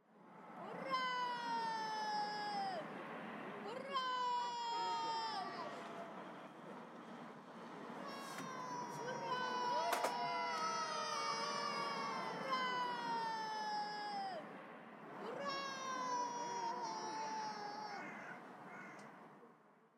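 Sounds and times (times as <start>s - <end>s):
children shouting hooray: 0.6s - 2.9s, 3.8s - 6.0s, 8.0s - 14.5s, 15.2s - 18.9s.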